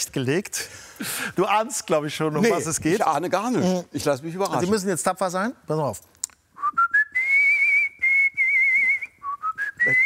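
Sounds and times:
speech: 0:00.0 - 0:06.2
artistic whistling: 0:06.6 - 0:10.0.

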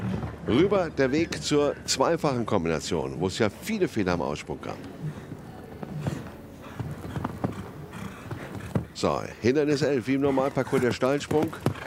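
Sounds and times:
speech: 0:00.5 - 0:05.1, 0:09.0 - 0:11.8
horse hooves galloping: 0:04.6 - 0:11.8.

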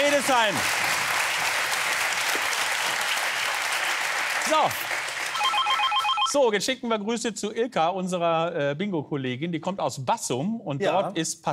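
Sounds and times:
studio audience applause: 0:00.0 - 0:06.4
speech: 0:00.2 - 0:00.9, 0:04.5 - 0:04.9, 0:06.3 - 0:11.5.

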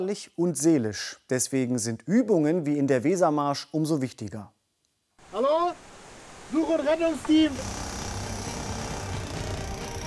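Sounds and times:
speech: 0:00.0 - 0:04.6, 0:06.6 - 0:07.8
sawing through wooden boards: 0:07.2 - 0:10.0.

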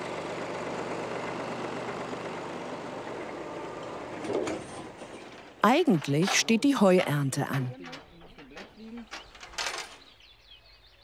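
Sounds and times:
tractor engine running: 0:00.0 - 0:10.0
clunk: 0:03.8 - 0:10.1
speech: 0:05.6 - 0:07.9.

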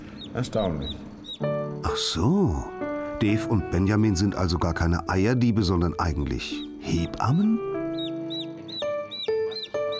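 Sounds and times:
newly hatched chick peeping loudly: 0:00.0 - 0:01.6, 0:06.5 - 0:09.9
speech: 0:00.4 - 0:07.7.

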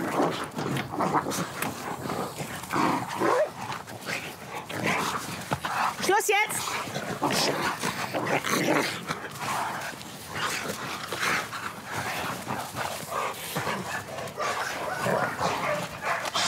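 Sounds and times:
dogs barking in a scuffle: 0:00.0 - 0:16.4
speech: 0:01.0 - 0:01.6.

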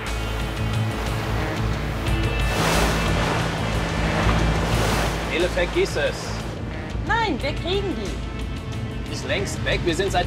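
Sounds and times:
fleeing sport boat on a lake: 0:00.0 - 0:10.2
speech: 0:05.4 - 0:06.3, 0:07.3 - 0:08.3, 0:09.1 - 0:10.2.

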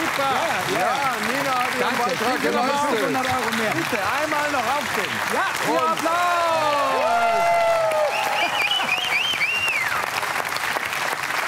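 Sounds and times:
crowd applause: 0:00.0 - 0:11.4
speech: 0:00.2 - 0:01.0, 0:01.9 - 0:07.5
shrill sliding whistle: 0:08.1 - 0:10.0.

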